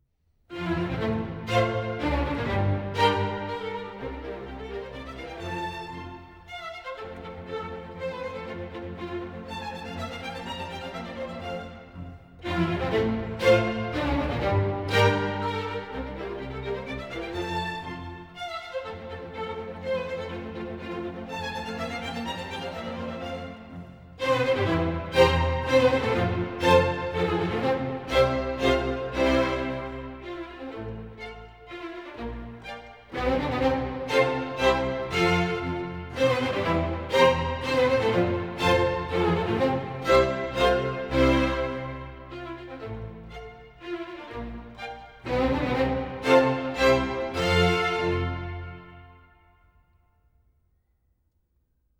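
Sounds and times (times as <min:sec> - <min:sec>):
string quartet minuet in F major: 0:00.5 - 0:49.8.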